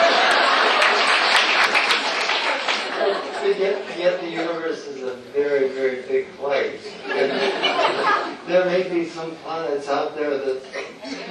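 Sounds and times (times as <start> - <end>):
audience applause: 0.0 - 3.5
laughter: 0.0 - 4.8, 6.7 - 8.5, 10.5 - 11.2
speech: 3.7 - 11.2.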